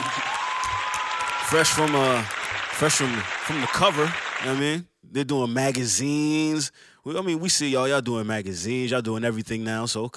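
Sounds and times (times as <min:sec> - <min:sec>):
person cheering or shouting: 0:00.0 - 0:02.3, 0:02.9 - 0:04.2
crowd applause: 0:00.0 - 0:04.8
speech: 0:01.5 - 0:10.1.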